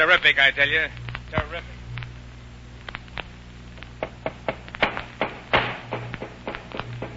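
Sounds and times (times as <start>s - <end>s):
speech: 0.0s - 1.8s
low steady hum: 0.0s - 7.1s
hammer nailing a wooden crate shut: 4.0s - 7.1s.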